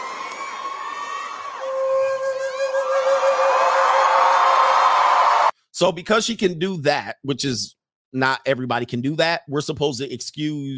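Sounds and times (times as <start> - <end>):
crowd cheering: 0.0 - 5.5
speech: 5.8 - 10.7.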